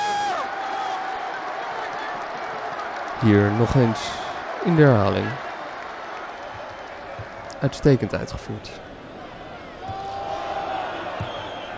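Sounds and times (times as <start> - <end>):
stadium crowd in Rotterdam cheering a goal: 0.0 - 11.7
speech: 3.2 - 5.4, 7.6 - 8.9.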